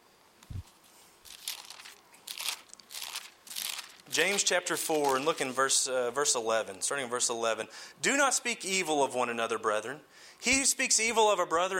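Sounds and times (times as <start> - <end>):
Bible pages being turned: 0.4 - 5.7
speech: 4.2 - 11.7.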